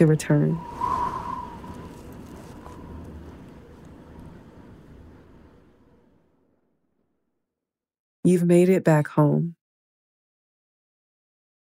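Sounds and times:
speech: 0.0 - 0.7, 8.2 - 9.6
breeze whistling: 0.0 - 5.6.

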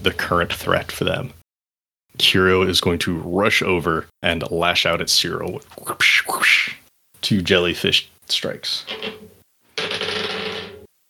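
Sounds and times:
speech: 0.0 - 1.4, 2.2 - 9.3
dice rolling: 8.9 - 10.9.

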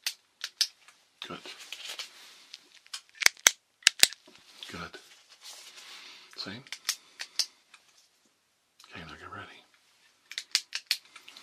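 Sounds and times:
sharp clicks near the ears for a hearing click test: 0.0 - 0.8, 2.8 - 4.2, 6.6 - 7.6, 10.3 - 11.4
speech: 1.3 - 1.6, 4.8 - 5.0, 6.4 - 6.8.

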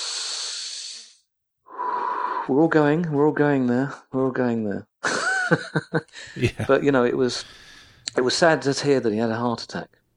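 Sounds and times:
person taking a deep breath: 0.0 - 2.5, 6.1 - 6.6, 7.4 - 8.1
speech: 2.5 - 4.9, 5.5 - 10.0
laughter: 5.1 - 7.0.

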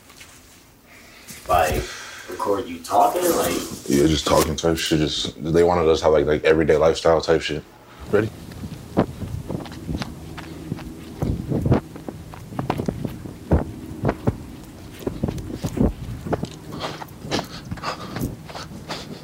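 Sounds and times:
speech: 1.5 - 8.4
wind noise: 8.0 - 19.2
footsteps of people running on uneven hilly terrain: 8.3 - 19.2.

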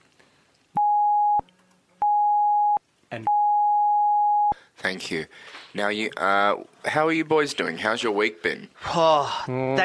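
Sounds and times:
censor bleep tone: 0.8 - 1.4, 2.0 - 4.5
speech: 4.8 - 9.8.

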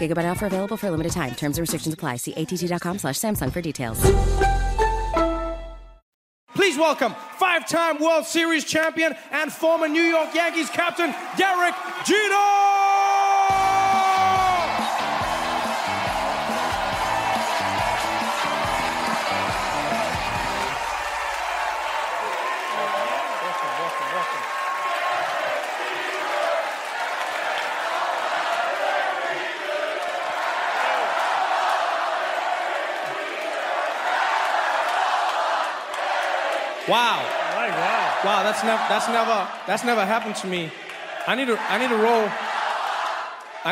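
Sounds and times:
speech: 0.0 - 4.7, 6.8 - 12.9, 36.9 - 37.4, 38.2 - 42.4
audience chanting and cheering for Derek Jeter: 9.6 - 43.7.

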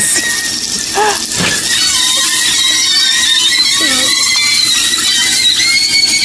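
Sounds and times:
sausages frying: 0.0 - 6.2
high wavering squeals of frying sausages: 1.6 - 6.2.

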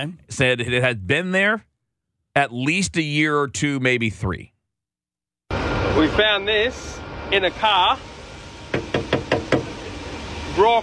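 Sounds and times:
speech: 0.0 - 1.7, 2.4 - 4.5, 5.5 - 8.1, 10.6 - 10.8
hammer hitting a rock-hard old burger: 8.8 - 9.7.

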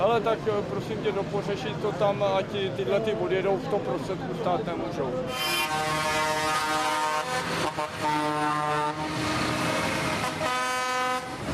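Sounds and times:
speech: 0.1 - 5.9, 7.7 - 9.4
tractors and farm machinery honking in traffic: 5.3 - 11.4.

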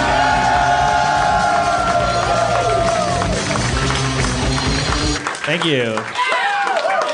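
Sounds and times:
sustained tonal whoops: 0.0 - 3.5, 6.2 - 7.1
audience cheering: 0.0 - 7.1
clapping: 1.5 - 7.1
speech: 5.5 - 6.2.

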